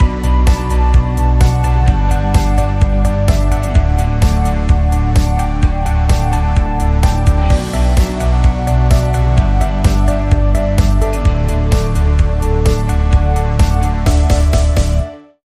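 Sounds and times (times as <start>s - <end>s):
electro pop music: 0.0s - 15.4s.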